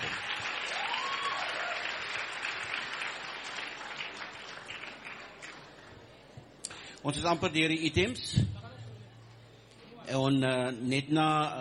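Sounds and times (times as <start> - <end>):
audience applause at a school event: 0.0 - 6.0
speech: 7.0 - 8.5, 10.1 - 11.5.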